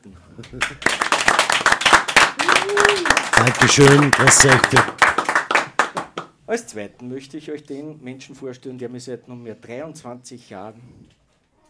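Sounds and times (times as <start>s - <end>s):
speech: 0.0s - 2.0s, 2.6s - 5.0s, 6.5s - 11.2s
studio audience clapping for a guest on a television programme: 0.4s - 6.3s.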